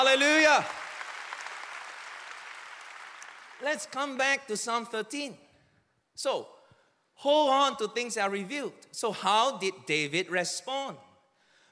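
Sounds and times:
speech: 0.0s - 0.8s, 3.6s - 5.4s, 6.2s - 6.6s, 7.2s - 11.0s
crowd of people clapping together: 0.0s - 4.2s.

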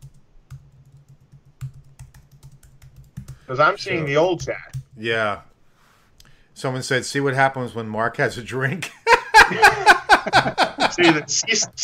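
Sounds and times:
typing on a computer keyboard: 0.0s - 3.5s, 4.4s - 5.1s
speech: 3.5s - 5.5s, 6.6s - 11.8s
laughter: 9.0s - 11.8s.

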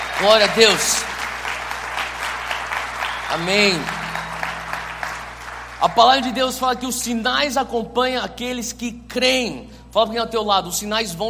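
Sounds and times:
audience applause: 0.0s - 6.3s
speech: 0.2s - 1.2s, 3.3s - 4.0s, 5.8s - 11.2s.

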